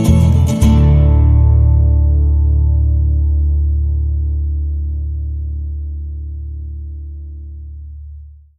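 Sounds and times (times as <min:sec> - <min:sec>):
farmhouse indie music: 0:00.0 - 0:06.8.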